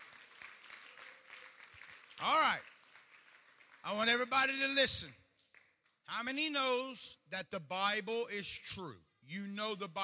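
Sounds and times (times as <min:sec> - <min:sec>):
crowd clapping: 0:00.0 - 0:04.8, 0:05.4 - 0:06.0
speech: 0:02.2 - 0:02.7, 0:03.8 - 0:05.2, 0:06.1 - 0:10.0.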